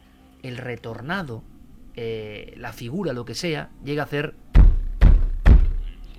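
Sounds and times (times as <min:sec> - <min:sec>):
speech: 0:00.4 - 0:04.4
heavy knocks on a door: 0:04.6 - 0:05.8.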